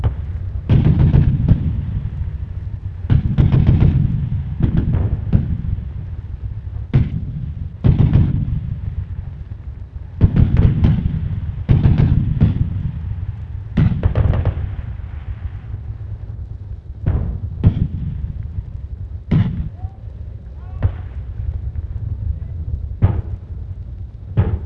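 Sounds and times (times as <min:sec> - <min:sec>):
destruction ambience: 0:00.0 - 0:24.6.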